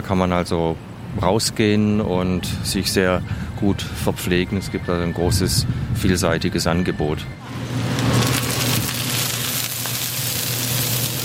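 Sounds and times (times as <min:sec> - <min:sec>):
speech: 0:00.0 - 0:07.6
oyster omelette sizzling and spattering on a hot griddle: 0:07.5 - 0:11.2.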